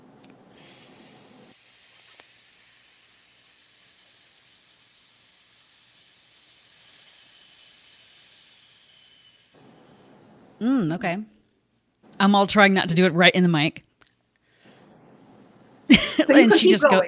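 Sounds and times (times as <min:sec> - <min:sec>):
long hissing exhale in breathing exercise: 0:00.3 - 0:10.7, 0:14.4 - 0:16.0
speech: 0:10.6 - 0:11.3, 0:12.2 - 0:13.8, 0:16.3 - 0:17.0
laughter: 0:15.9 - 0:17.0.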